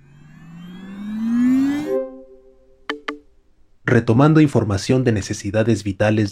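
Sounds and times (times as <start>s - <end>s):
smart home system electronic startup tone: 0.0s - 3.2s
speech: 3.9s - 6.2s.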